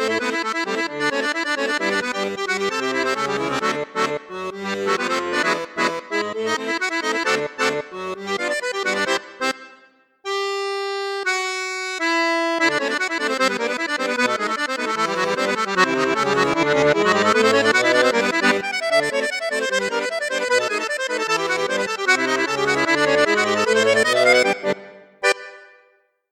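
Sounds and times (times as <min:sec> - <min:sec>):
accordion with bassoon and flute registers playing a saltarello: 0:00.0 - 0:26.0.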